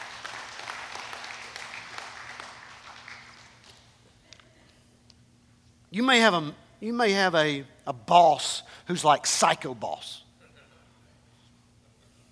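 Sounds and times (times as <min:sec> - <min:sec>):
audience hand clapping in praise: 0:00.0 - 0:04.2
speech: 0:06.0 - 0:10.2.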